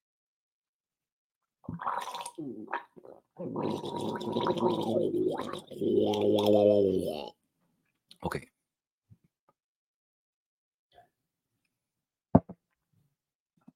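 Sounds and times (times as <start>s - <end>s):
speech: 1.6s - 7.4s, 8.2s - 8.5s
man with a slight cold gargling colloidal silver water: 1.8s - 7.4s.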